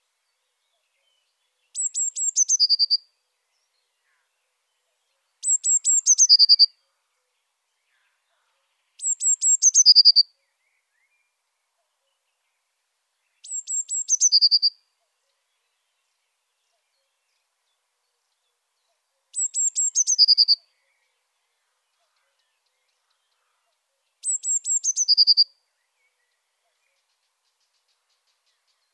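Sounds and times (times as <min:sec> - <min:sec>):
Eurasian blue tit singing: 0:01.1 - 0:03.0, 0:05.2 - 0:06.8, 0:08.9 - 0:10.3, 0:13.3 - 0:15.8, 0:19.3 - 0:21.2, 0:22.0 - 0:28.9.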